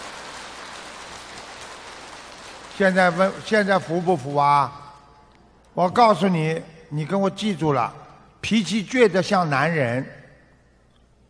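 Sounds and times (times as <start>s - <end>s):
applause: 0.0s - 4.7s
speech: 2.8s - 4.8s, 5.8s - 10.2s.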